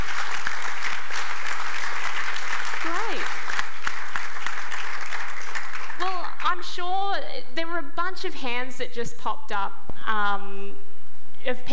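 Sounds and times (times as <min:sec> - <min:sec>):
crowd audience clapping hands: 0:00.0 - 0:06.6
speech: 0:06.7 - 0:11.7.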